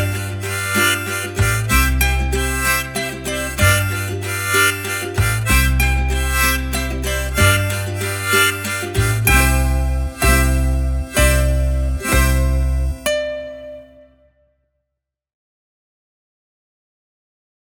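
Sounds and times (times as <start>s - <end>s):
harmonica playing a shanty: 0.0s - 14.1s
ukulele playing a shanty: 0.0s - 14.3s.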